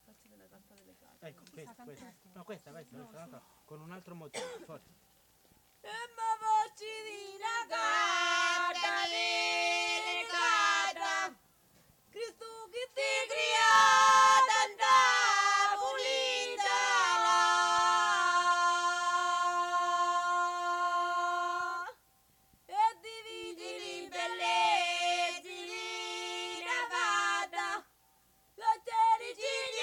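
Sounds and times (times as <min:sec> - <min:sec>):
harvest song: 0:00.0 - 0:29.8.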